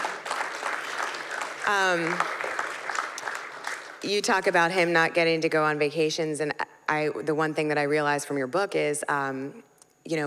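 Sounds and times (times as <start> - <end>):
audience clapping: 0.0 - 4.2
speech: 1.6 - 2.4, 4.0 - 10.2.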